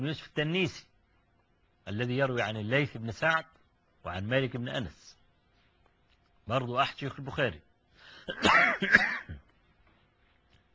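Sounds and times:
speech: 0.0s - 0.9s, 1.8s - 5.2s, 6.5s - 7.7s, 8.3s - 9.3s
harsh coughing blamed on dusty Cairo air: 8.2s - 9.5s.

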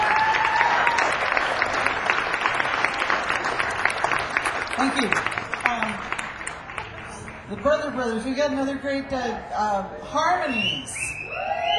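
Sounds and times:
audience applause for sound crew and volunteers: 0.0s - 7.7s
speech: 4.8s - 5.4s, 7.5s - 11.1s.

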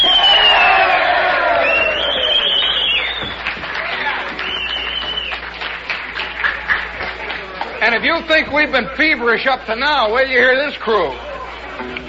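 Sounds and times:
crowd cheering: 0.0s - 9.0s
scattered clapping: 1.6s - 8.1s
speech: 8.2s - 12.0s.

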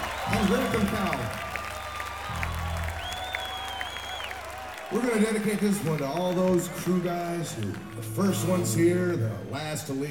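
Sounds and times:
audience applause for a performer: 0.0s - 9.2s
speech: 0.3s - 1.5s, 4.9s - 10.0s
faint whistle-like tones: 1.9s - 4.4s.

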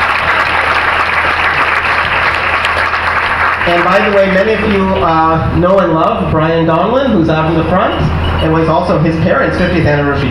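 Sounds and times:
audience applause: 0.0s - 5.0s
speech: 3.7s - 10.2s.

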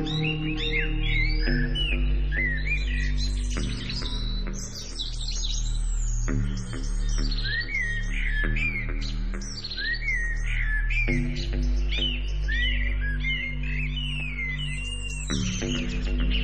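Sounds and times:
held musical tones: 0.0s - 3.2s
birds chirping: 0.0s - 16.4s
deep drone: 0.0s - 16.4s.

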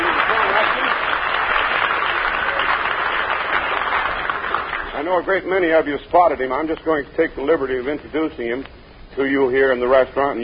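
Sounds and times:
studio audience clapping and cheering: 0.0s - 5.3s
speech: 5.1s - 10.4s.

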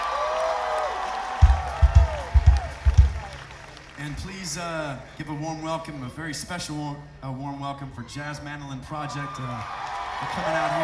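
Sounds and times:
crowd whooping: 0.0s - 3.8s, 9.2s - 10.8s
audience applause: 0.0s - 4.3s, 9.6s - 10.8s
low heavy thumps: 1.4s - 3.4s
speech: 4.5s - 10.8s.

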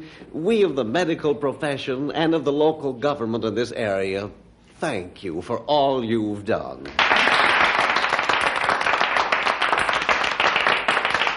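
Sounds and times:
speech: 0.0s - 7.4s
audience applause: 7.0s - 11.3s.

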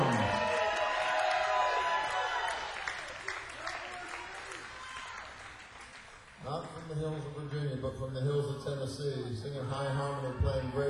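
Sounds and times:
audience applause: 0.0s - 7.4s
speech: 8.0s - 10.8s.

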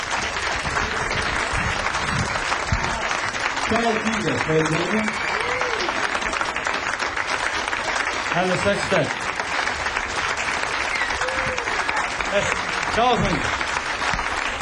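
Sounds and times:
recorded hand clapping: 0.0s - 14.6s
speech: 3.7s - 5.4s, 8.4s - 9.2s, 12.4s - 13.6s.

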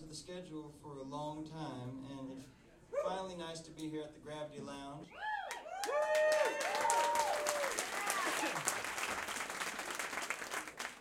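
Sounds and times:
speech: 0.1s - 6.7s
audience applause: 5.4s - 10.9s.

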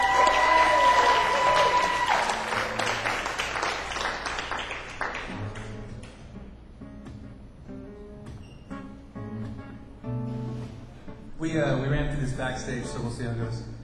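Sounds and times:
audience cheering: 0.0s - 5.0s
audience clapping: 0.0s - 6.3s
speech: 11.5s - 13.7s.

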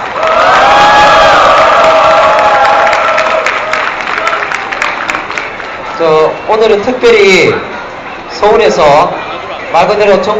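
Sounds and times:
crowd cheering: 0.0s - 6.0s
speech: 6.5s - 7.7s, 8.4s - 10.3s.

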